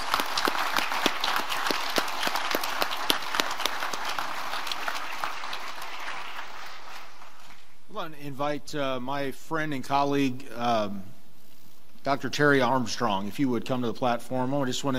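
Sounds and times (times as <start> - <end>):
audience applause for graduates: 0.0 - 7.7
speech: 8.1 - 11.1, 12.0 - 14.9.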